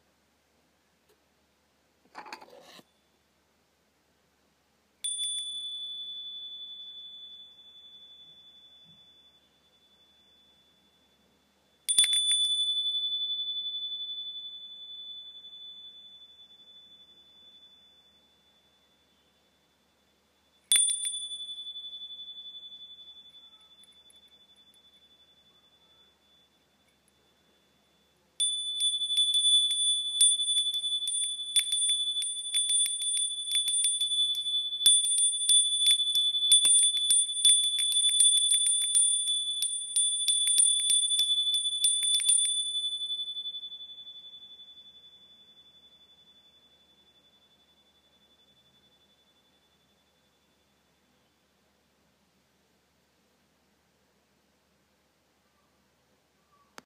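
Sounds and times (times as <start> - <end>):
Japanese bell: 5.0 - 51.3.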